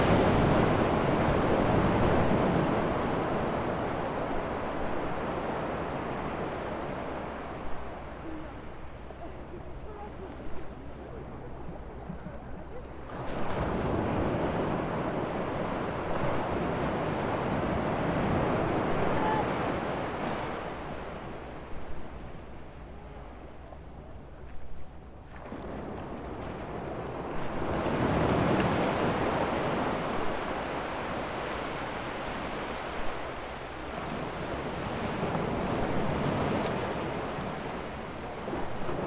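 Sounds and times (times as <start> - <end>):
waves rolling in and washing out at the Île d'Houat, Brittany: 0.0 - 39.0.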